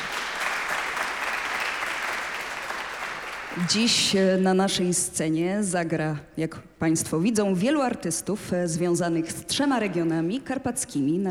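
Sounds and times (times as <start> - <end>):
audience applause: 0.0 - 4.0
speech: 3.6 - 11.3.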